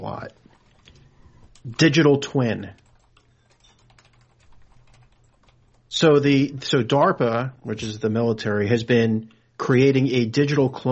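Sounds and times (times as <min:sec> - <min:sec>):
speech: 0:00.0 - 0:00.4, 0:01.6 - 0:02.8, 0:06.0 - 0:10.9
computer keyboard typing a search: 0:00.2 - 0:06.0.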